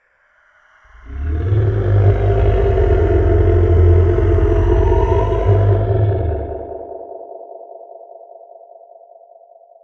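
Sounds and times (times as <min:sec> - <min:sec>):
monster growling: 0:01.0 - 0:07.0.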